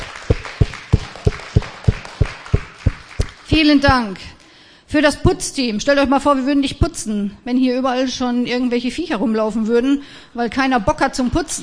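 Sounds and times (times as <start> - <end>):
applause: 0.0 - 3.6
speech: 3.6 - 11.6.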